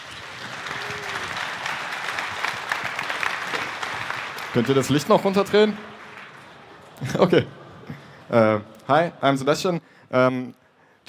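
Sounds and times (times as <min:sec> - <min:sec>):
audience applause welcoming a conference speaker: 0:00.0 - 0:07.2
speech: 0:04.6 - 0:05.9, 0:07.0 - 0:07.6, 0:08.3 - 0:11.0.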